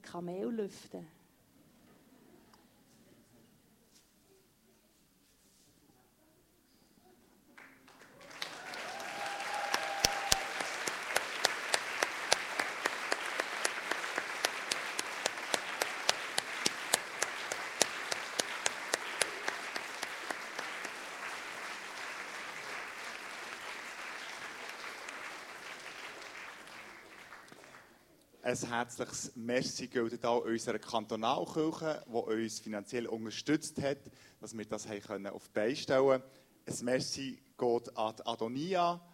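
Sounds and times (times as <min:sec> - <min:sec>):
speech: 0:00.1 - 0:01.2, 0:28.5 - 0:39.1
audience applause: 0:07.6 - 0:28.0.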